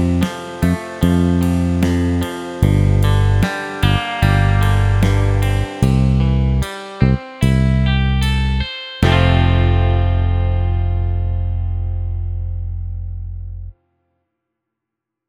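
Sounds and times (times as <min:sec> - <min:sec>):
four-bar quaver musical phrase: 0:00.0 - 0:13.7.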